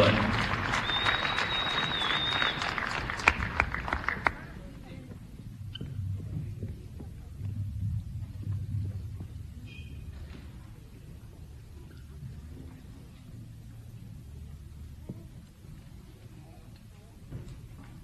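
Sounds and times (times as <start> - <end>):
applause at an Auburn High School sports night: 0.0 - 4.6
low quiet rumble: 5.4 - 9.7.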